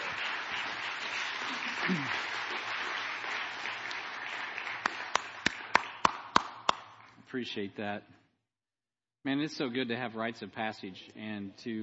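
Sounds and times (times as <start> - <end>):
audience applause: 0.0 - 6.8
speech: 1.9 - 2.2, 7.3 - 8.2, 9.2 - 11.8.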